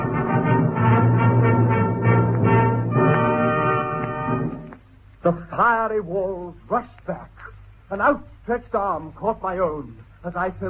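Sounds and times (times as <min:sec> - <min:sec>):
loud blast of many trumpets: 0:00.0 - 0:04.7
speech: 0:05.2 - 0:10.6.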